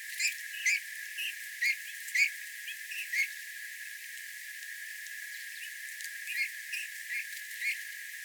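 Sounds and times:
Pyrrhula pyrrhula calling: 0.2 - 3.3, 6.3 - 7.8.

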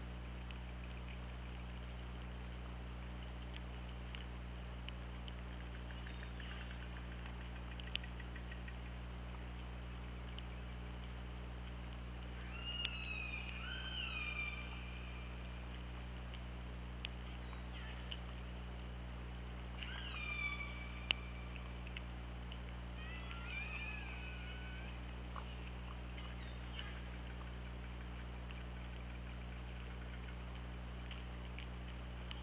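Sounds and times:
constant low hum: 0.0 - 32.4
killer whale pulsed calls: 12.4 - 15.4, 19.8 - 21.8, 23.0 - 27.2.

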